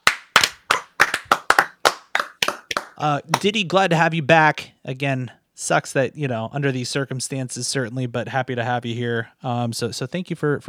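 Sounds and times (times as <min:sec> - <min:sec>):
hands clapping: 0:00.0 - 0:03.8
speech: 0:03.0 - 0:10.6.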